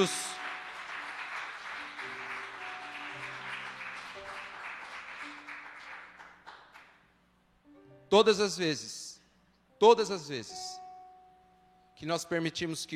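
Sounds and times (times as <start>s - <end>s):
speech: 0.0s - 0.2s, 8.1s - 9.0s, 9.8s - 10.8s, 12.0s - 12.9s
audience applauding: 0.0s - 7.0s.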